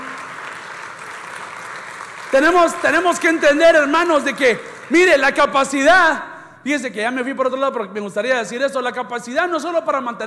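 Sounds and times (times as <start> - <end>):
audience applause: 0.0 - 3.6
speech: 2.3 - 10.2.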